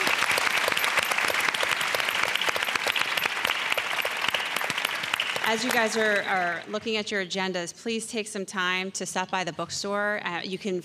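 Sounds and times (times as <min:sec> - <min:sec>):
audience applauding a panel at the close of a discussion: 0:00.0 - 0:06.7
speech: 0:05.5 - 0:10.8.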